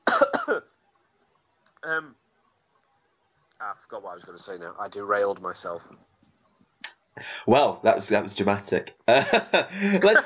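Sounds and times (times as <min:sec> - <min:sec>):
person coughing: 0:00.0 - 0:00.6
speech: 0:01.8 - 0:02.2, 0:03.6 - 0:06.1, 0:07.2 - 0:10.2
laughter: 0:09.1 - 0:10.2.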